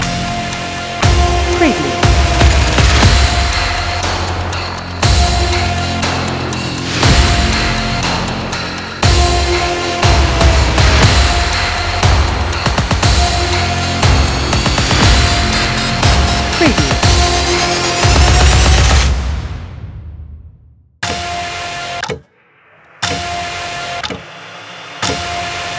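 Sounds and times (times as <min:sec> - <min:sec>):
clock ticking: 0:00.0 - 0:13.7, 0:14.6 - 0:17.7, 0:21.0 - 0:22.4, 0:23.0 - 0:24.4, 0:25.0 - 0:25.7
cinematic action trailer music: 0:00.0 - 0:25.7.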